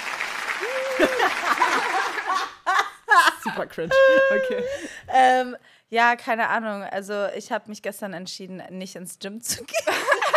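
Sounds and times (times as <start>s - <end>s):
applause sound effect from soundboard: 0.0s - 2.4s
speech: 0.6s - 2.6s, 3.2s - 10.3s
laughter: 0.6s - 5.0s, 9.7s - 10.3s.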